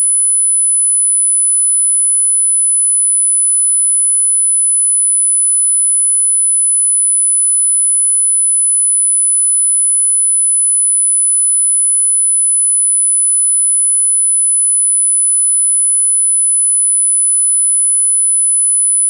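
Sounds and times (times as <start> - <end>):
10 Hz sine tone in right channel: 0.0 - 19.0.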